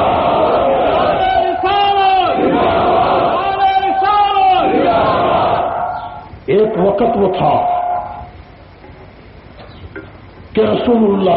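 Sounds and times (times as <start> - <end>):
crowd at a religious sermon gathering chanting Allahu Akbar in unison: 0.0 - 3.9, 4.5 - 6.2
speech: 7.0 - 7.7, 10.6 - 11.3.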